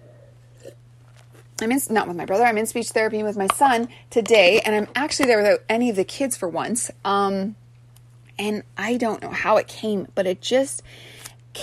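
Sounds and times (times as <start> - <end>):
low electrical hum: 0.0 - 11.6
person sipping a drink: 0.5 - 1.6
speech: 1.6 - 7.6, 8.4 - 11.6.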